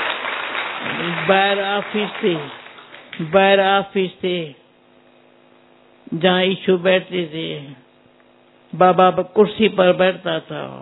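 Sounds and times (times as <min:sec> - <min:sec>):
crowd clapping: 0:00.0 - 0:03.5
speech: 0:01.1 - 0:02.6, 0:03.2 - 0:04.6, 0:06.1 - 0:07.8, 0:08.7 - 0:10.8.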